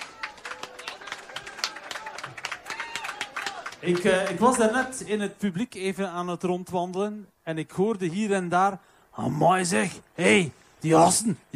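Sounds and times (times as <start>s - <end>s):
audience applause: 0.0s - 5.0s
speech: 3.8s - 11.5s.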